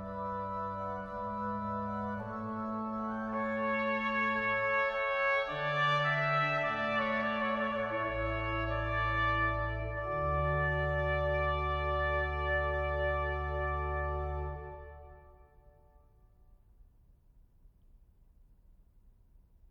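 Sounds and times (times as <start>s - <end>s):
organ: 0.0s - 15.7s
trumpet: 0.0s - 16.2s.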